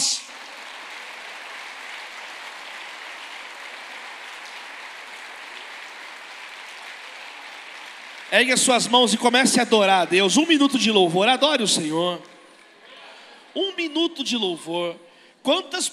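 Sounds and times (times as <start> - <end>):
audience applause: 0.0 - 11.2
speech: 8.3 - 12.3, 13.6 - 15.9.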